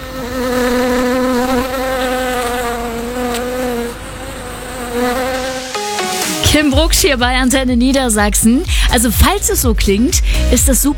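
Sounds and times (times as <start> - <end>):
bees buzzing in a garden: 0.0 - 8.6
speech: 6.6 - 10.9.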